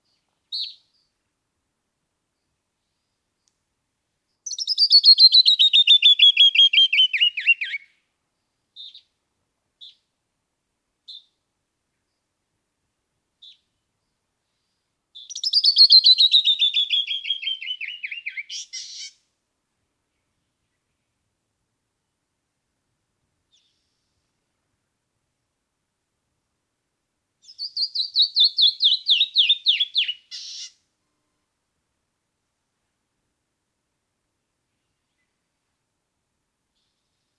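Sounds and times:
canyon wren singing: 4.4s - 7.9s, 15.2s - 19.2s, 27.4s - 30.8s.

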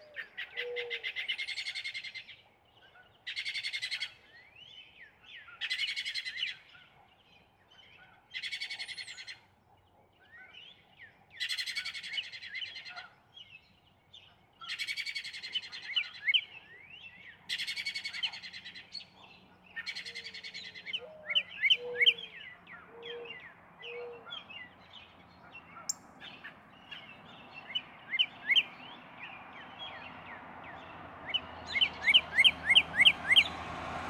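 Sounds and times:
Northern Cardinal: 0.0s - 33.6s.

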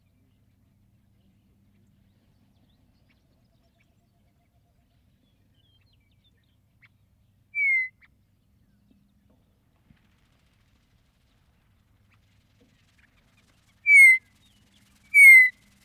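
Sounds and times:
Western meadowlark singing: 7.6s - 7.9s, 13.9s - 14.2s, 15.1s - 15.5s.

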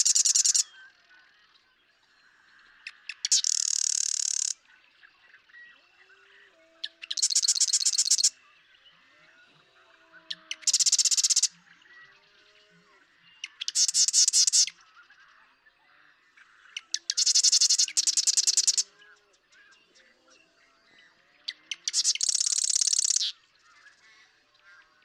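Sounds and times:
Marsh Wren singing: 0.0s - 0.6s, 3.0s - 4.6s, 7.0s - 8.3s, 10.6s - 11.5s, 13.4s - 14.7s, 16.8s - 18.8s, 21.6s - 23.3s
low soft background calls: 0.0s - 25.0s.

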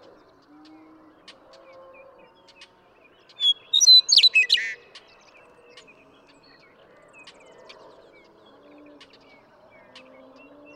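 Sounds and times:
western meadowlark song: 3.3s - 4.9s.

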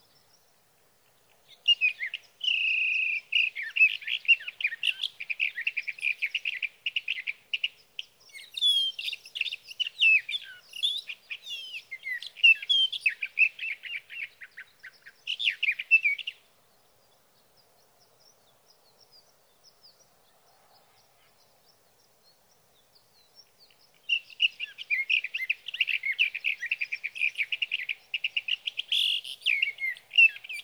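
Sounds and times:
Sage thrasher warbling song: 1.2s - 16.4s, 22.8s - 30.6s.

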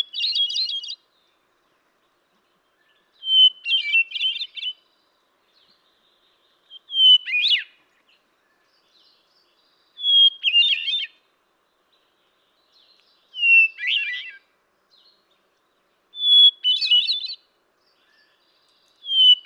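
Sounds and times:
hermit thrush singing: 0.0s - 19.4s.

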